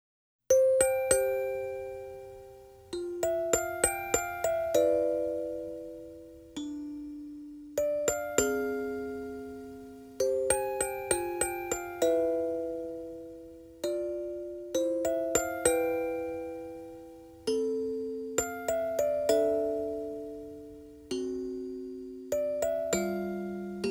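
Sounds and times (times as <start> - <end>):
music box melody: 0.5 - 23.8.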